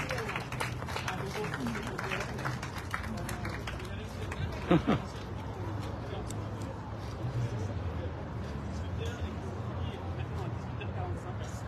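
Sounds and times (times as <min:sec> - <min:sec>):
group of people applauding: 0:00.0 - 0:05.5
people chattering: 0:00.0 - 0:11.6
laughter: 0:04.2 - 0:05.6
speech: 0:04.7 - 0:05.2.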